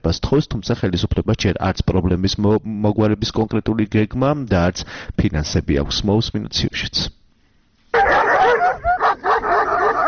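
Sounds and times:
speech: 0:00.0 - 0:07.2
stray dogs barking and yelping in Lagodekhi: 0:07.9 - 0:10.0.

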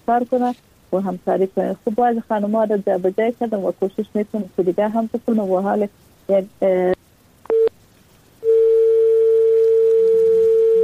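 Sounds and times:
speech: 0:00.1 - 0:07.0
steady mid-pitched telephone dial tone: 0:08.4 - 0:10.8.

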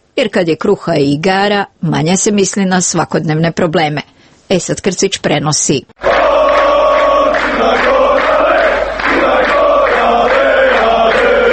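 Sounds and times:
speech: 0:00.2 - 0:06.0
football fans cheering and chanting at a European Championship qualifying match: 0:06.0 - 0:11.5.

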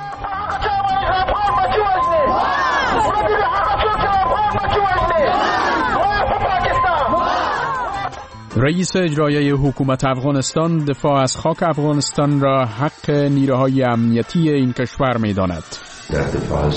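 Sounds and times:
large crowd of protesters shouting and chanting: 0:00.0 - 0:08.4
speech: 0:08.6 - 0:16.7.

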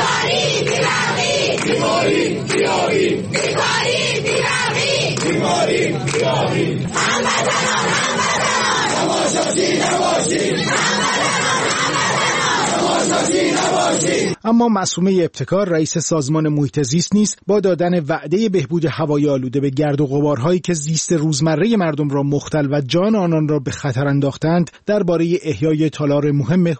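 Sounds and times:
street protest crowd chanting: 0:00.0 - 0:14.4
speech: 0:01.8 - 0:04.8, 0:05.4 - 0:26.7.

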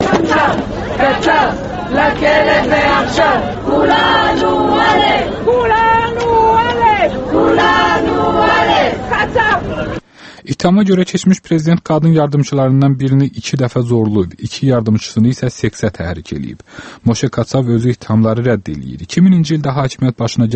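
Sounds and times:
women's rights activists chanting outside a courthouse: 0:00.0 - 0:10.0
speech: 0:01.0 - 0:06.4, 0:07.0 - 0:20.5.

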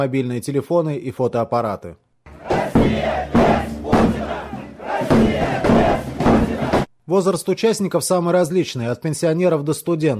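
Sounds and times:
speech: 0:00.0 - 0:02.1, 0:07.1 - 0:10.1
large crowd chanting a slogan at a street protest rally: 0:02.3 - 0:06.9.

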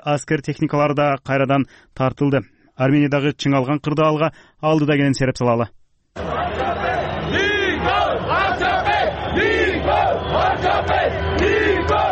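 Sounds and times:
speech: 0:00.0 - 0:06.4
crowd of street demonstrators protesting in Armenia shouting and chanting: 0:06.2 - 0:12.1.

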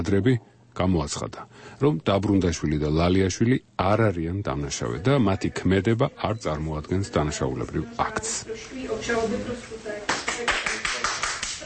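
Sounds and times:
speech: 0:00.0 - 0:10.6
hand clapping from a Czech journalist at a not-guilty verdict: 0:10.1 - 0:11.6.

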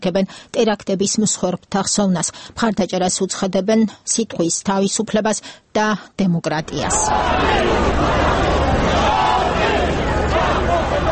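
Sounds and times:
speech: 0:00.0 - 0:09.7
dense crowd babble and shouting at a Paris rally after the terror attacks: 0:06.8 - 0:11.1.

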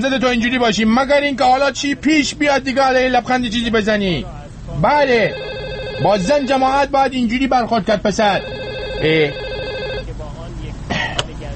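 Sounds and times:
speech: 0:00.0 - 0:09.4
telephone ringing: 0:05.0 - 0:07.0, 0:08.2 - 0:10.1.

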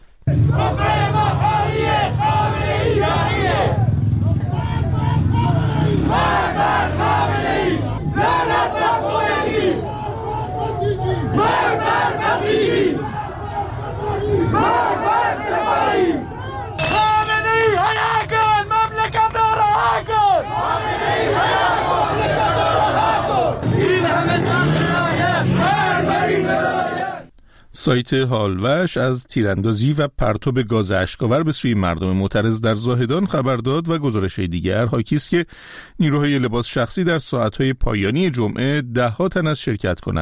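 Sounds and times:
protesters chanting slogans in the street: 0:00.3 - 0:27.3
speech: 0:27.8 - 0:40.2.

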